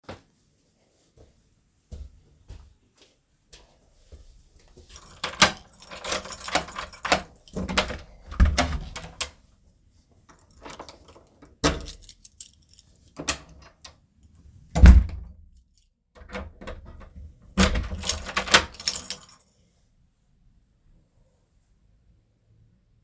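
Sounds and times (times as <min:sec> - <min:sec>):
keys in door lock: 0:04.9 - 0:09.5, 0:10.3 - 0:13.9, 0:16.2 - 0:17.0, 0:17.6 - 0:19.5
door opening and closing: 0:05.0 - 0:09.4, 0:16.2 - 0:19.2.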